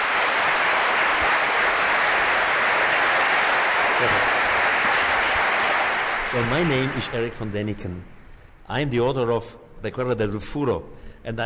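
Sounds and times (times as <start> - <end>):
crowd applauding a guest: 0.0 - 7.8
speech: 4.0 - 4.4, 6.3 - 11.4.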